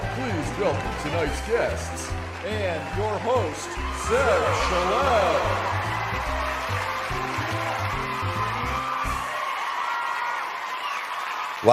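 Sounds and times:
bass-heavy music: 0.0s - 9.3s
audience clapping and cheering: 0.0s - 11.7s
speech: 0.2s - 6.8s.

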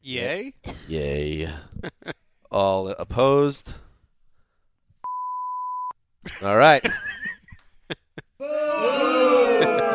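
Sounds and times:
speech: 0.0s - 1.9s, 2.6s - 3.8s, 6.4s - 7.2s
laughter: 1.7s - 2.2s, 6.3s - 9.9s
crowd booing: 8.4s - 9.9s.

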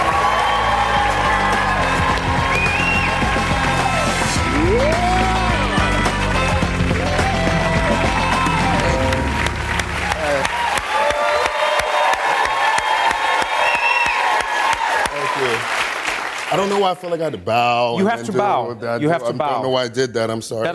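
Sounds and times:
band playing: 0.0s - 11.1s
studio audience applause with cheers and whoops: 0.0s - 17.0s
speech: 16.8s - 20.7s.

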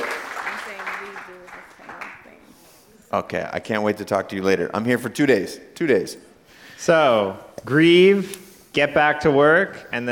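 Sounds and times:
audience clapping: 0.0s - 2.4s
speech: 3.1s - 10.1s.

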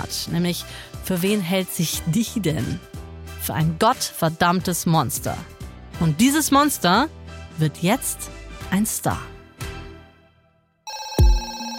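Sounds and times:
speech: 0.1s - 9.4s
telephone ringing: 10.8s - 11.7s.

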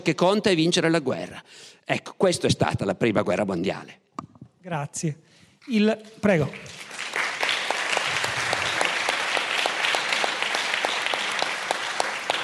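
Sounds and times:
speech: 0.0s - 7.1s
audience applause: 6.5s - 12.4s.

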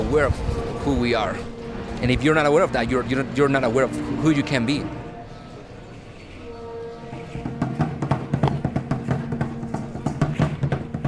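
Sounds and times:
speech: 0.1s - 5.0s
drums playing in a far corner of the Zocalo in Mexico City: 7.4s - 11.0s.

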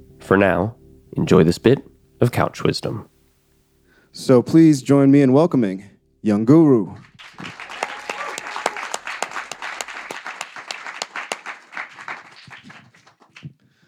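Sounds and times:
speech: 0.3s - 3.1s, 4.1s - 7.6s
audience applause: 7.0s - 13.5s.

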